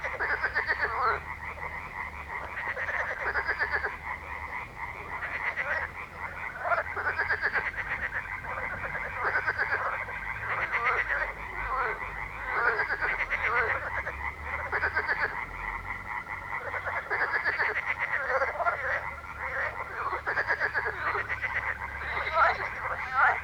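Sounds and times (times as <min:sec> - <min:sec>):
frog chorus: 0:00.0 - 0:23.4.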